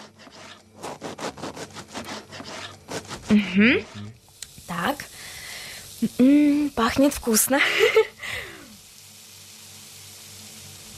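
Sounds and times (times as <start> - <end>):
knife cutting butter: 0.0 - 4.0
speech: 3.3 - 4.0, 4.8 - 5.0, 6.0 - 8.1.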